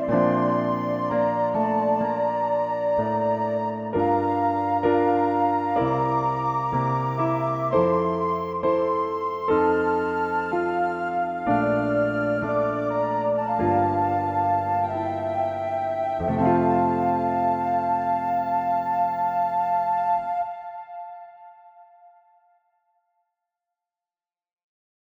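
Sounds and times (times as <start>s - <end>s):
hymn on organ flute stops: 0.0s - 7.8s, 8.5s - 20.4s.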